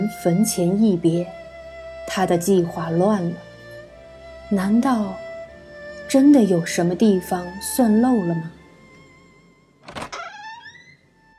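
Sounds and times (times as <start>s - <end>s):
speech: 0.1s - 1.4s, 2.1s - 3.5s, 4.5s - 5.2s, 6.1s - 8.6s
door creaking open: 9.8s - 11.3s.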